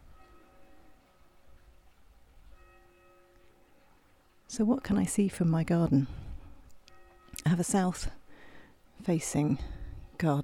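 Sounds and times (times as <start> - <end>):
church bells rung by bell ringers practising: 0.0 - 4.3, 6.9 - 7.9
speech: 4.5 - 6.2, 7.5 - 8.2, 9.0 - 10.4.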